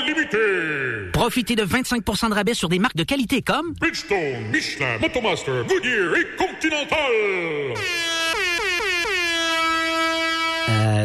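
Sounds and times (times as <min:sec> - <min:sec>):
speech: 0:00.1 - 0:08.2, 0:10.6 - 0:11.0
siren horn blast: 0:07.8 - 0:11.0.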